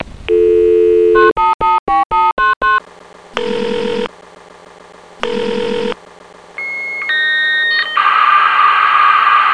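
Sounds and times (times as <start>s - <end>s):
dial-up modem: 0.3s - 4.1s, 5.2s - 6.0s, 6.6s - 9.5s.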